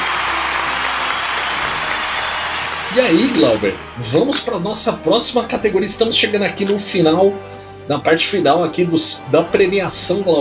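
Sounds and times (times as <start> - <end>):
crowd applause: 0.0 - 5.4
speech: 2.9 - 10.3.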